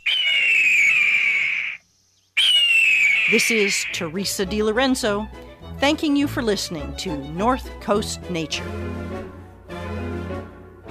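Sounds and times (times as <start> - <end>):
red-tailed hawk screaming: 0.0 - 1.8, 2.4 - 4.1
speech: 3.3 - 9.4.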